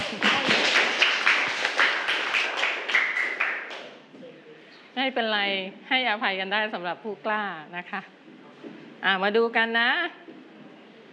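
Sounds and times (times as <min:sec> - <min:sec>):
children clapping for a classmate: 0:00.0 - 0:04.0
speech: 0:05.1 - 0:08.2, 0:09.0 - 0:10.2.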